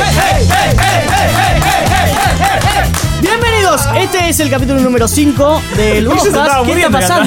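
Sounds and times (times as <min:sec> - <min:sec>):
people shouting together: 0:00.0 - 0:03.0
speech: 0:04.3 - 0:07.2.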